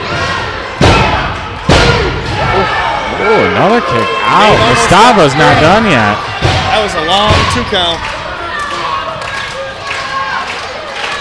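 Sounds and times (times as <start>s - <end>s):
wrestling crowd cheering: 0.0s - 11.1s
speech: 3.3s - 8.1s
scattered clapping: 7.6s - 11.1s.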